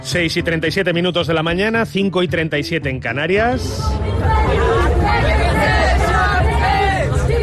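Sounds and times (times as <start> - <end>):
speech: 0.1 - 5.4
street protest crowd hubbub in Berlin against rising housing prices: 3.5 - 7.4.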